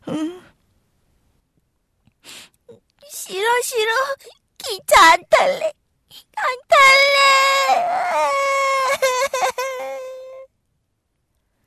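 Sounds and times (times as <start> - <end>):
speech: 3.3 - 5.8, 6.4 - 9.0
young child crying: 6.2 - 10.5.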